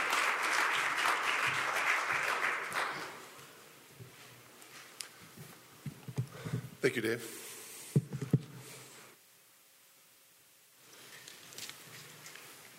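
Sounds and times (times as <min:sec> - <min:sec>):
audience applause welcoming a speaker: 0:00.0 - 0:03.4
speech: 0:06.8 - 0:07.4.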